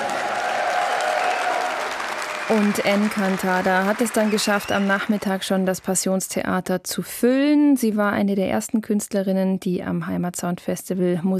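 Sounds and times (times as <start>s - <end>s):
festival audience applause greeting a Latin-pop singer: 0.0s - 6.1s
speech: 2.5s - 11.3s.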